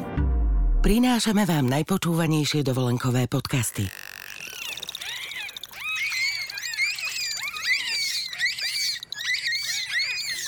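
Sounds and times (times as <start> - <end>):
speech: 0.8 - 4.0
bottlenose dolphins chattering with squealing whistles: 3.7 - 10.4.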